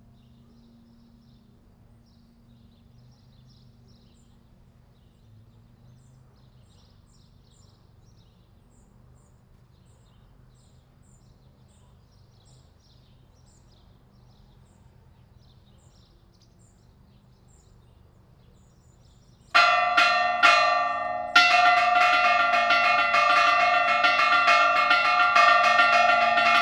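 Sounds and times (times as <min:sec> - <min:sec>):
bells ringing at LaCorrada: 0:19.6 - 0:26.6.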